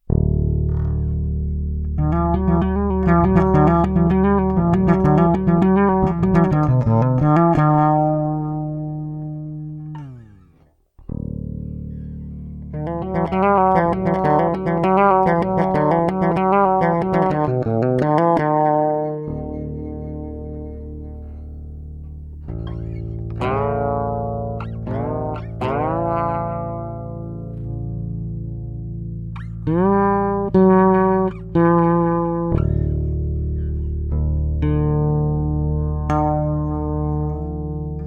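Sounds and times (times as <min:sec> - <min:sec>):
flat wound bass with diverse EQs: 0:00.0 - 0:38.0.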